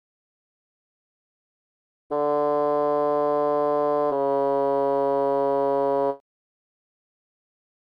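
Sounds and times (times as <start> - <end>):
larghetto flute melody: 2.1 - 6.2.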